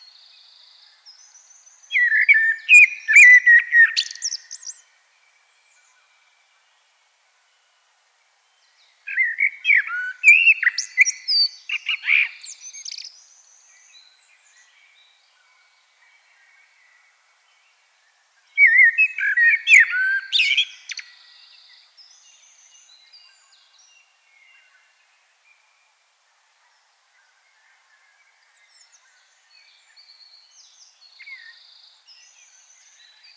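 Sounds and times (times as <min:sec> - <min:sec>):
common blackbird song: 0:00.0 - 0:04.9, 0:08.6 - 0:17.7, 0:18.4 - 0:24.9, 0:27.2 - 0:33.3.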